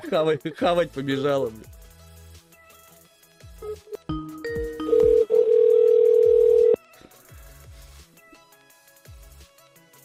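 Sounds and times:
speech: 0.0s - 1.8s
short telephone beeps: 4.8s - 6.8s.

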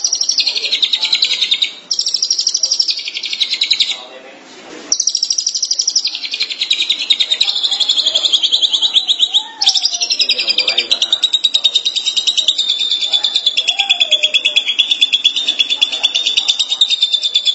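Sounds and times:
Long-tailed Shrike singing fast high chatter: 0.0s - 4.1s, 4.9s - 17.5s
faint background noise: 0.0s - 17.5s.

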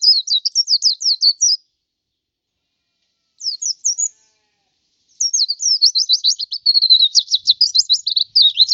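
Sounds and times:
white-eye twittering song: 0.0s - 1.6s, 3.4s - 4.2s, 5.1s - 8.7s.

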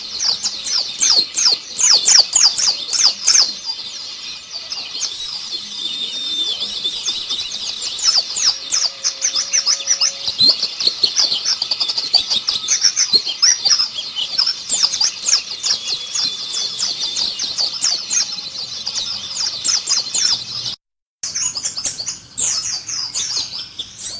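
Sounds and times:
Oriental white-eye song: 0.0s - 24.1s.

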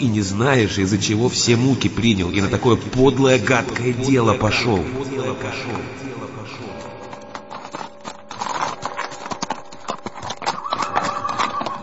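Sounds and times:
speech: 0.0s - 6.0s
hooves of carriage horses clip-clopping on the Nikolaevsky Bridge: 2.0s - 11.8s
horse whinnying: 10.4s - 11.8s.

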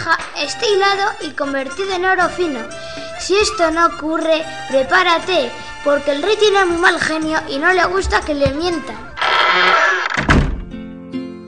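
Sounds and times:
speech: 0.1s - 9.8s
tower door closing with a heavy low thud: 9.2s - 10.8s.

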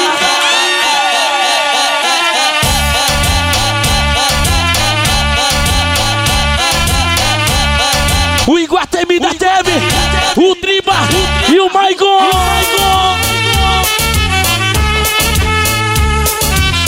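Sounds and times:
crowd shouting and cheering: 0.0s - 16.8s
loud dense party music: 0.0s - 16.8s
heavy pounding bass beat: 2.6s - 8.6s, 9.4s - 11.6s, 12.3s - 16.8s.

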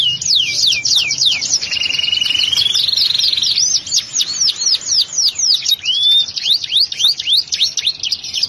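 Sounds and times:
canary singing: 0.0s - 8.4s.

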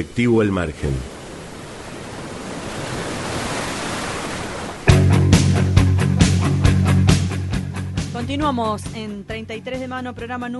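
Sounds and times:
speech: 0.0s - 1.1s, 8.3s - 10.5s
sea waves and surf: 0.0s - 7.4s
music with a low sustained tone and regular percussive hits: 4.9s - 9.1s.

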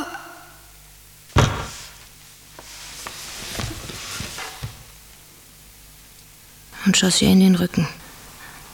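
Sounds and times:
woman's body falling against a door: 1.3s - 2.1s, 2.9s - 5.1s
shuffling scrapes: 1.5s - 5.0s
faint knocks: 3.0s - 5.0s
speech: 6.8s - 8.0s.

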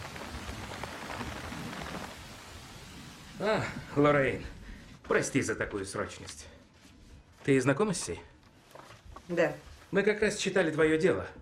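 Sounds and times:
heavy rain in Berlin: 0.0s - 5.0s
speech: 3.4s - 6.6s, 7.4s - 8.3s, 9.3s - 11.4s.

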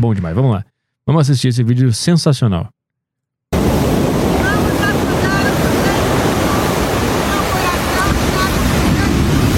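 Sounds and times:
speech: 0.0s - 2.8s
ocean waves at the beach: 3.5s - 9.5s
wind at the beach: 3.5s - 9.5s.

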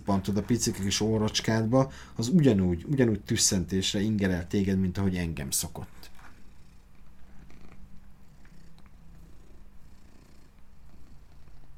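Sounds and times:
cat purring: 0.0s - 2.1s, 5.6s - 11.7s
speech: 0.1s - 6.1s.

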